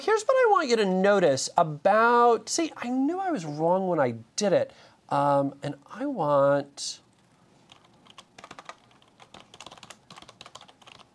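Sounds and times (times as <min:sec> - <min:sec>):
speech: 0:00.0 - 0:07.0
typing on a computer keyboard: 0:07.7 - 0:11.1.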